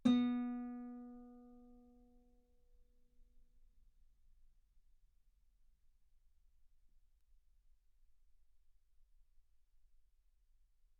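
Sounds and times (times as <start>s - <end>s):
guitar note B3: 0.0s - 1.4s.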